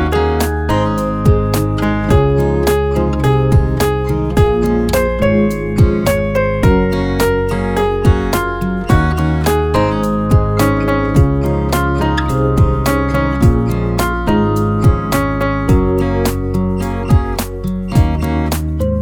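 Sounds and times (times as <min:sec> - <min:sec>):
piano piece: 0:00.0 - 0:19.0.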